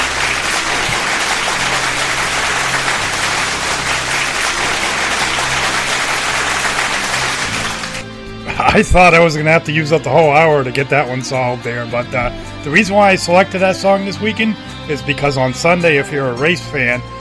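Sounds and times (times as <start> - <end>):
loud round of applause from a crowd: 0.0 - 8.8
speech: 8.7 - 17.1.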